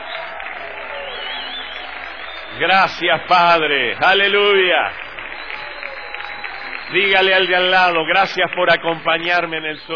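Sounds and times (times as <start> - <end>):
church congregation whistling: 0.0 - 2.9, 4.4 - 8.0
church congregation clapping: 0.0 - 9.9
speech: 2.6 - 5.0, 6.9 - 9.9.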